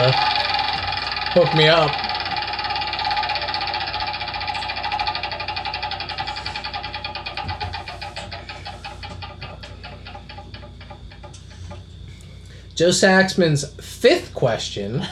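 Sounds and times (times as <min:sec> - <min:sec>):
speech: 0:00.0 - 0:00.3, 0:01.3 - 0:02.0, 0:12.8 - 0:15.1
prize wheel spinning and clicking: 0:00.0 - 0:11.8.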